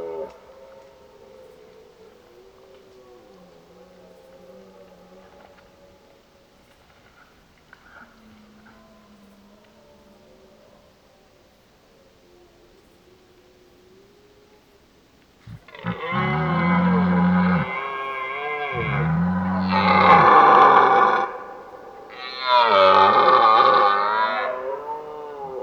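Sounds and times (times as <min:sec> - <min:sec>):
red deer bellowing: 0:15.4 - 0:25.6.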